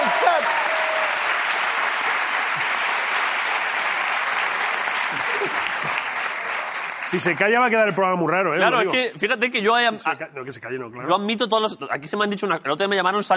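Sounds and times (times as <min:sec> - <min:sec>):
audience applause: 0:00.0 - 0:08.1
speech: 0:07.1 - 0:13.3.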